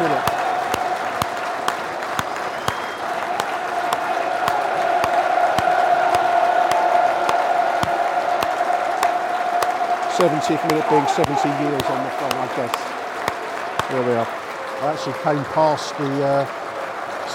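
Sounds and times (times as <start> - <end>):
stadium crowd applauding: 0.0 - 17.3
speech: 10.2 - 13.0, 13.9 - 16.6.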